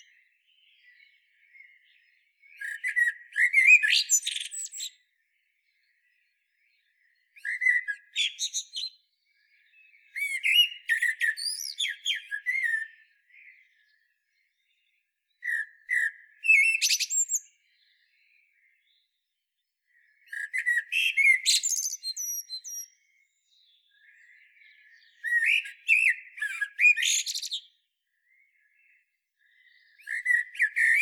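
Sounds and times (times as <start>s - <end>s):
Common blackbird singing: 0.0s - 19.2s, 19.9s - 31.0s.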